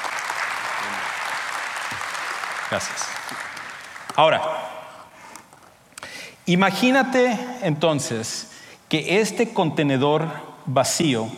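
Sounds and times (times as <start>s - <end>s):
audience applause: 0.0s - 4.3s
speech: 2.7s - 3.5s, 4.2s - 4.7s, 6.5s - 11.3s.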